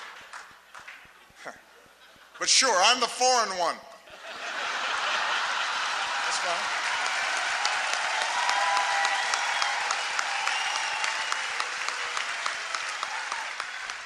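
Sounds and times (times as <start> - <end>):
crowd applauding: 0.0 - 1.4, 4.6 - 14.0
laughter: 1.2 - 2.6, 4.0 - 7.5
speech: 2.4 - 3.9, 6.4 - 6.8
people whooping and cheering: 5.1 - 14.0.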